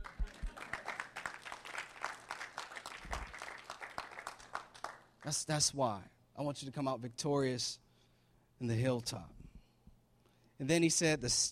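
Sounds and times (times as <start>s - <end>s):
audience applause: 0.0s - 5.1s
speech: 5.2s - 7.8s, 8.6s - 9.4s, 10.6s - 11.4s.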